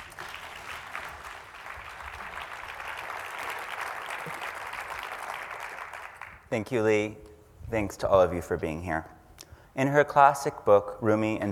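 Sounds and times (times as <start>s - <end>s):
audience applause at a Rumi poetry event: 0.0s - 6.5s
speech: 6.5s - 9.1s, 9.8s - 11.4s.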